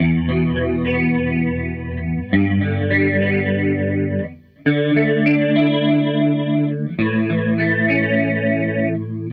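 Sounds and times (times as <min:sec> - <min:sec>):
Strat guitar loop: 0:00.0 - 0:09.3.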